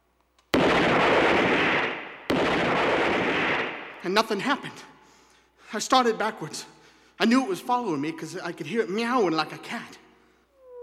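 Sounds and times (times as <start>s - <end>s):
revolver gunshots: 0.6s - 4.5s
speech: 4.0s - 4.9s, 5.7s - 10.0s.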